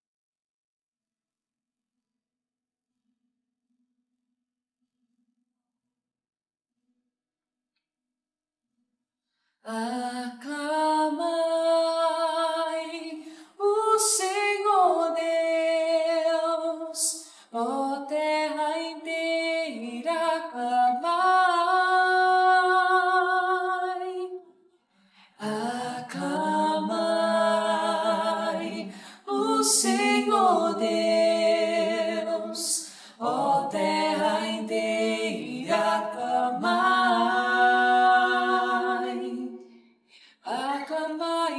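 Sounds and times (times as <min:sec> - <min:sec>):
psalm singing: 0:09.7 - 0:24.4, 0:25.4 - 0:39.6, 0:40.4 - 0:41.5.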